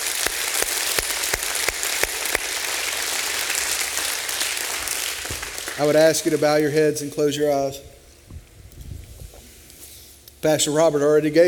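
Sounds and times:
audience applause: 0.0s - 6.6s
sharp rhythmic claps: 0.0s - 7.2s
speech: 5.8s - 7.9s, 10.4s - 11.4s.

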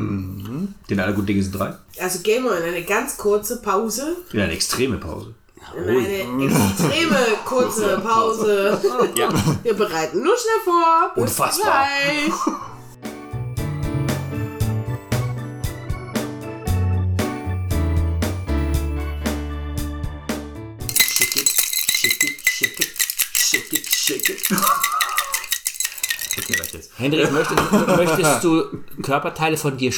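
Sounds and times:
speech: 0.7s - 12.7s, 27.0s - 29.9s
laughter: 6.4s - 9.6s, 27.0s - 28.7s
ice and glassware clinking while mixing a cocktail: 9.0s - 9.6s, 20.9s - 28.4s
music: 12.7s - 21.1s.

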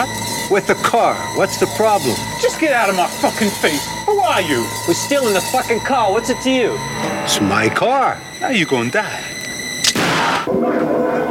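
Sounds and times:
speech: 0.0s - 9.4s
gunshots: 9.8s - 10.5s.

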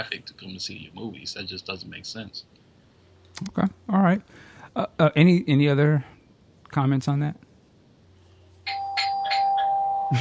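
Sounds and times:
speech: 0.0s - 2.6s, 3.4s - 6.1s, 6.7s - 7.4s
steady hum: 0.0s - 10.2s
doorbell ringing with bright electronic chime: 8.7s - 10.2s.

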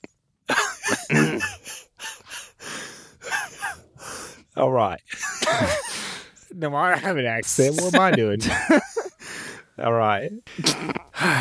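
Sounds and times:
harsh raspy coughing: 0.0s - 2.6s, 3.2s - 3.9s, 5.2s - 6.2s, 10.5s - 11.3s
laughter: 0.5s - 2.6s, 3.2s - 3.9s, 5.1s - 6.3s, 7.5s - 9.7s, 10.4s - 11.3s
rough throat clearing: 0.9s - 1.6s
speech: 4.6s - 5.2s, 6.6s - 8.9s, 9.8s - 11.3s.

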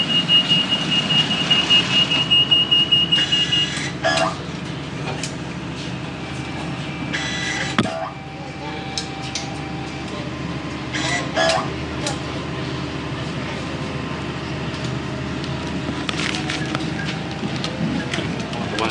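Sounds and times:
train door warning beeps: 0.0s - 4.4s, 6.8s - 10.1s, 10.9s - 11.7s
low rumble of a train carriage: 0.0s - 18.8s
faint voices: 7.8s - 18.8s.

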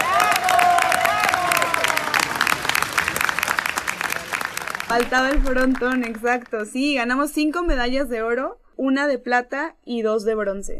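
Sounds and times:
crowd applause for athletes: 0.0s - 6.7s
speech: 4.9s - 10.7s.

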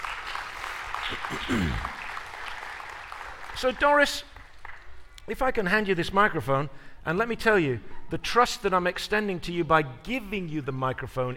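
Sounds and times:
voice over applause: 0.0s - 4.8s
audience clapping: 0.0s - 5.2s
speech: 1.1s - 2.0s, 3.6s - 4.3s, 5.3s - 11.3s.

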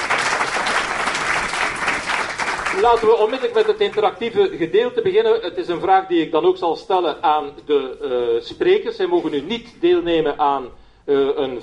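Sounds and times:
audience applause: 0.0s - 4.0s
speech: 2.8s - 11.6s.

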